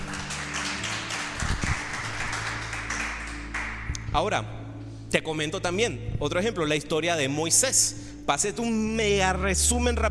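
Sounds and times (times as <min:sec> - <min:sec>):
audience applause: 0:00.0 - 0:03.9
speech: 0:04.2 - 0:10.0.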